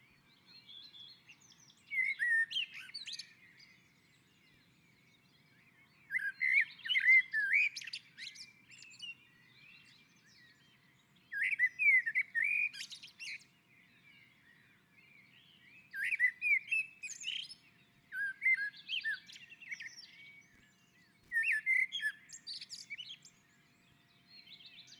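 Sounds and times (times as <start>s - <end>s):
Common blackbird song: 0.0s - 24.9s.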